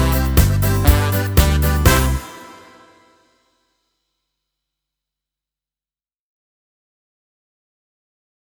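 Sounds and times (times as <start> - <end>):
karaoke singing: 0.0 - 3.0.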